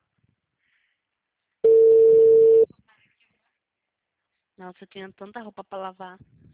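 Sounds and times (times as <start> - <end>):
telephone tone of an unanswered call: 1.6 - 2.7
speech: 4.6 - 6.5.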